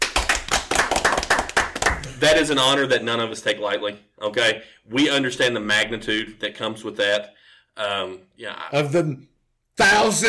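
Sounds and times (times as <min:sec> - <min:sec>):
round of applause: 0:00.0 - 0:02.4
speech: 0:02.2 - 0:10.2.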